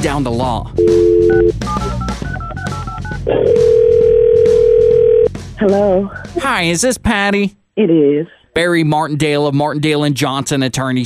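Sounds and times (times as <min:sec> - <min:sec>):
speech: 0:00.0 - 0:02.0, 0:03.2 - 0:04.0, 0:05.6 - 0:11.0
telephone ringback tone: 0:00.8 - 0:05.3
telephone keypad beeps: 0:01.2 - 0:03.2
telephone dial tone: 0:03.0 - 0:05.3.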